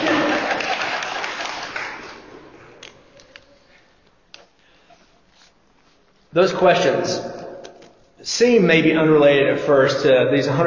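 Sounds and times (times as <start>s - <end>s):
audience applause: 0.0s - 2.3s
speech: 6.3s - 7.4s, 8.2s - 10.6s.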